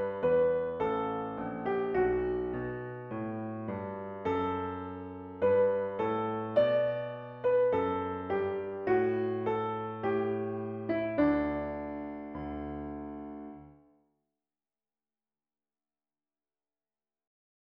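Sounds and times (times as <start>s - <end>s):
piano: 0.0s - 14.0s.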